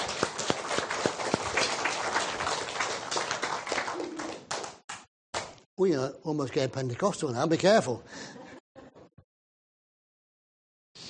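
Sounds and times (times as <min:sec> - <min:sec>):
audience applause: 0:00.0 - 0:04.8
speech: 0:05.8 - 0:08.4.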